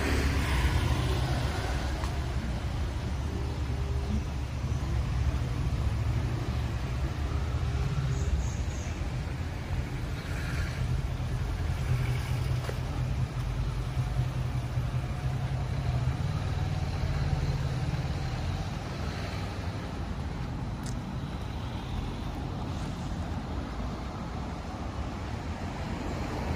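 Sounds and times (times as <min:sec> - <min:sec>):
passing cars and engines rumbling in Tel Aviv street: 0:00.0 - 0:26.5.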